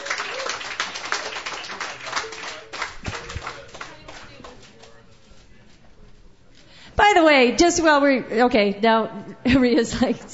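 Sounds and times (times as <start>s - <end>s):
audience applause: 0.0s - 5.0s
speech: 7.1s - 10.3s.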